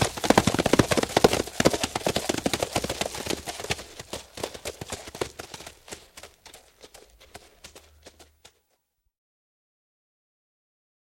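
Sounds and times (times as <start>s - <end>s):
horses galloping on hard ground: 0.0s - 8.8s.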